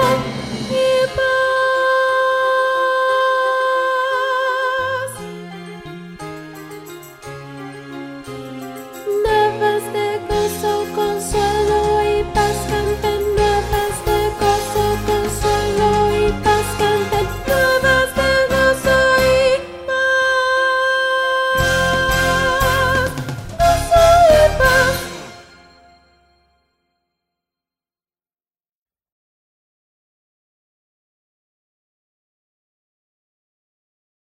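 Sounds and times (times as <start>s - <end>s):
soprano singing: 0.0s - 25.9s.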